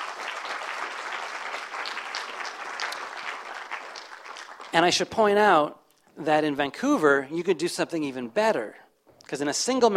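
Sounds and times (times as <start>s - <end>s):
audience applause for volunteers: 0.0s - 4.9s
speech: 4.7s - 9.9s.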